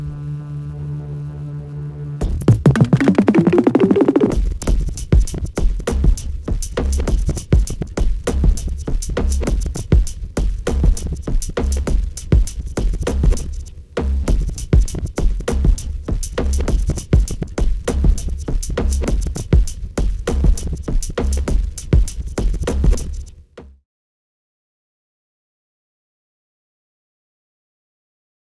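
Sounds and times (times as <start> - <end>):
OP1 Beads drum loop: 2.3 - 13.6, 14.3 - 23.1.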